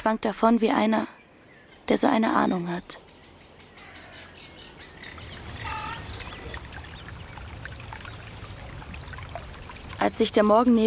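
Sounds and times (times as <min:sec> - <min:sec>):
speech: 0:00.0 - 0:01.2, 0:01.9 - 0:03.0, 0:10.0 - 0:10.8
river water flowing: 0:04.8 - 0:10.8.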